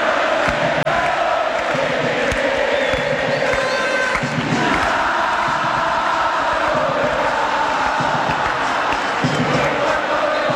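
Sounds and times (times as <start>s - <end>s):
Olimpia football fans chanting in the stadium: 0.0s - 10.5s.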